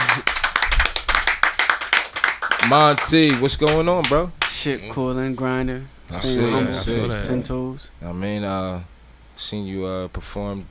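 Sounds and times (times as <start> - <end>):
sharp hand claps of a few hands: 0.0 - 4.6
speech: 2.6 - 10.6.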